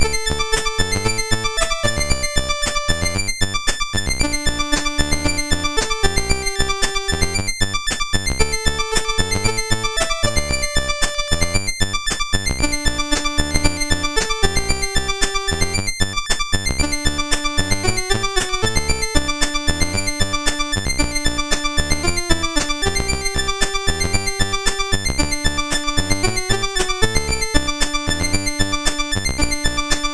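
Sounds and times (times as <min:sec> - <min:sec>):
chiptune music on MOS 6581 R4 sound chip: 0:00.0 - 0:30.1.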